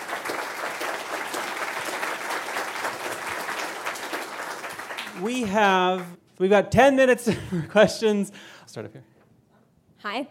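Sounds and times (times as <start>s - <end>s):
crowd applauding: 0.0s - 6.2s
speech: 5.2s - 9.1s, 10.0s - 10.2s.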